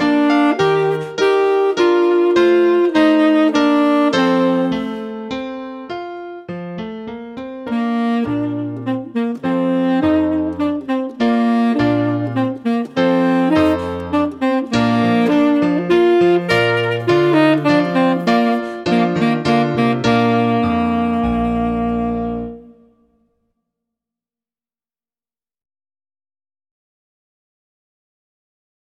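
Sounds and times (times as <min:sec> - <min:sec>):
tenor saxophone playing a minuet: 0:00.0 - 0:06.5, 0:07.2 - 0:23.2.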